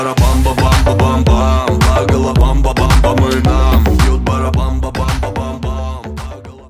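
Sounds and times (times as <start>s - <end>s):
baraban drum: 0.2s - 6.4s.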